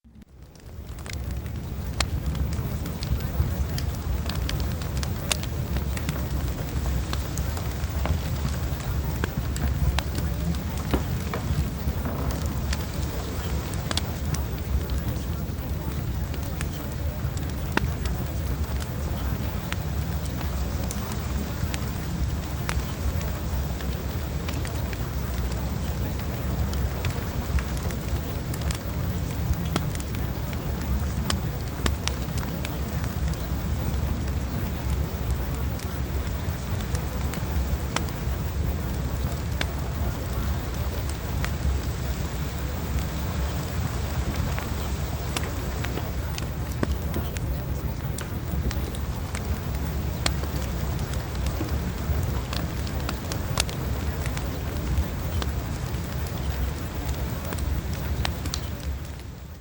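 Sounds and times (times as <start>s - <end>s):
fireplace: 0.1s - 59.5s.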